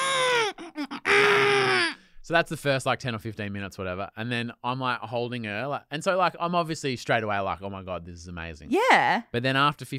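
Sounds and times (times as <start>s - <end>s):
person imitating a newborn baby screaming: 0.0s - 2.0s
speech: 2.3s - 9.9s.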